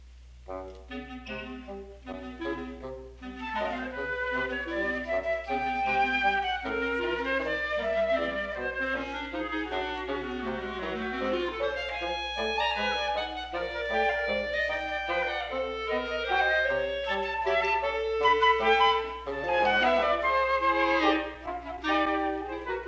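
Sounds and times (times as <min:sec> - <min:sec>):
clarinet: 0:00.0 - 0:22.8
flute: 0:00.5 - 0:22.8.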